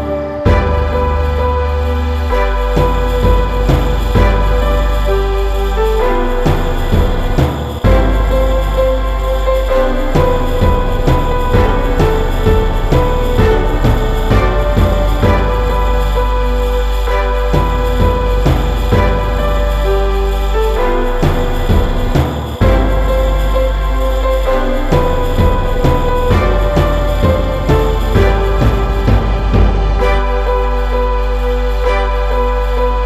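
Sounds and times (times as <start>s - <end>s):
orchestra playing a Christmas carol: 0.0s - 33.0s.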